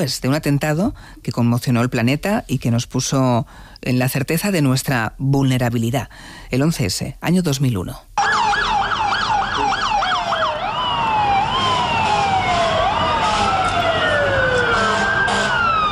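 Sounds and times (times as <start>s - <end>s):
speech: 0.0s - 8.2s
emergency siren alarm: 8.2s - 15.9s.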